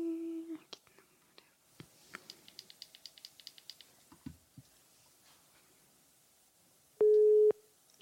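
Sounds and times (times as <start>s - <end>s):
quick clicks: 2.2s - 3.9s
telephone busy signal: 7.0s - 7.6s.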